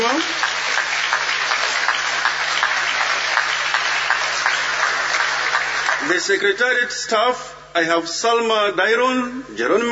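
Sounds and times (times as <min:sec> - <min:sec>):
conference audience clapping at a closing session: 0:00.0 - 0:06.5
speech: 0:06.1 - 0:09.9.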